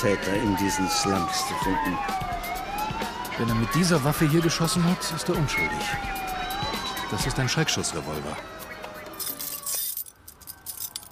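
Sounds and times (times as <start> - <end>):
speech: 0.0 - 2.6, 3.4 - 8.6
gang leader's bunch of keys jangling while unlocking a rusty iron gate: 9.0 - 11.0.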